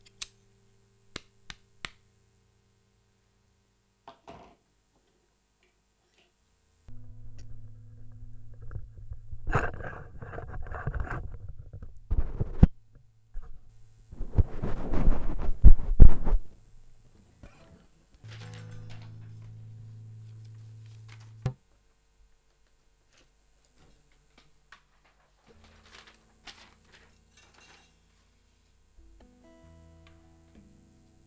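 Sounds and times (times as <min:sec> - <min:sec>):
background noise: 0:00.0 - 0:31.2.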